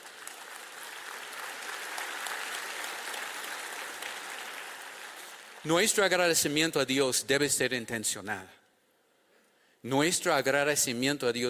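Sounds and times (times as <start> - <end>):
audience applauding: 0.0 - 5.7
speech: 5.6 - 8.6, 9.8 - 11.4.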